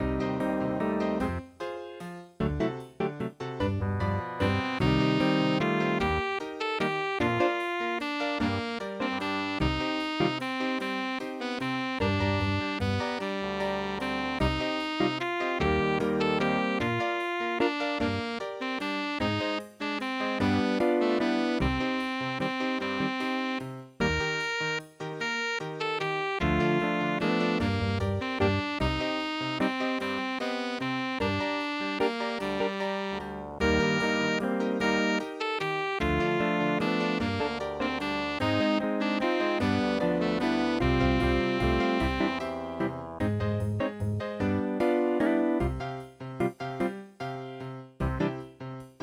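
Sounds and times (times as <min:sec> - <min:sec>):
jazz waltz: 0:00.0 - 0:48.9.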